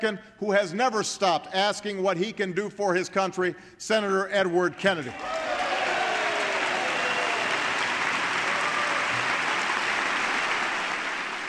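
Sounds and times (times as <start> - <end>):
speech: 0.0 - 5.5
large crowd applauding: 5.1 - 11.4.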